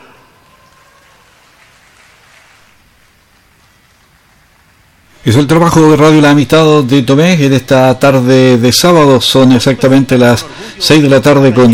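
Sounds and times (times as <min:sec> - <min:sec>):
audience applause: 0:00.0 - 0:05.2
speech: 0:05.2 - 0:11.7.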